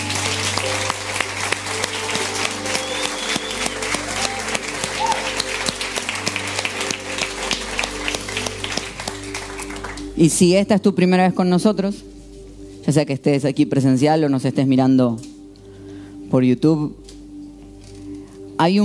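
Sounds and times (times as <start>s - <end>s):
audience applause: 0.0s - 10.1s
speech: 10.2s - 12.1s, 12.9s - 15.3s, 16.3s - 17.0s, 18.6s - 18.8s.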